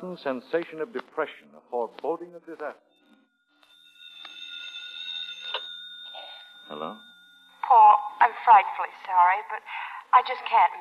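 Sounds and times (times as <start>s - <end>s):
speech: 0.0s - 3.0s, 6.7s - 10.7s
telephone ringing: 2.8s - 9.5s.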